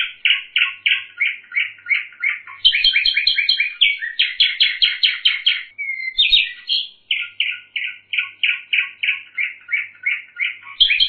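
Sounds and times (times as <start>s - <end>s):
bird song with whistled notes and buzzy rattling phrases: 0.0s - 11.0s.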